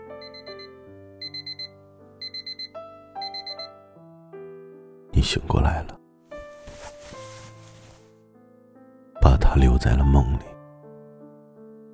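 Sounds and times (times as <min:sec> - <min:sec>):
alarm clock ringing: 0:00.2 - 0:03.7
speech: 0:05.2 - 0:06.0, 0:09.6 - 0:10.5.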